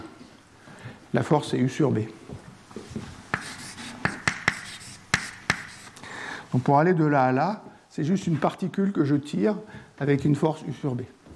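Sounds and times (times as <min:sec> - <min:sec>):
speech: 0:01.1 - 0:02.3, 0:06.6 - 0:11.2
chalk tapping and scraping on a board: 0:03.3 - 0:06.0.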